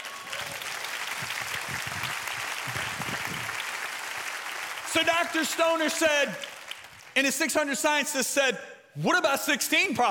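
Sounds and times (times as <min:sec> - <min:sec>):
sustained audience applause: 0:00.0 - 0:07.2
speech: 0:05.0 - 0:06.5, 0:07.2 - 0:10.0.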